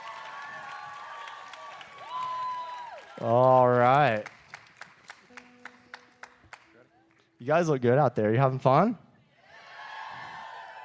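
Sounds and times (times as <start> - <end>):
audience clapping: 0.0 - 7.2
speech: 3.2 - 4.3, 7.4 - 9.0.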